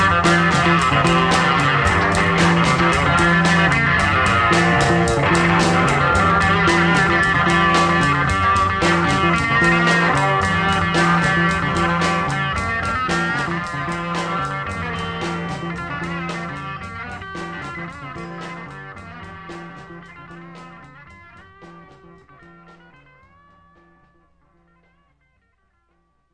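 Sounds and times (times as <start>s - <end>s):
musical solo: 0.0s - 24.2s.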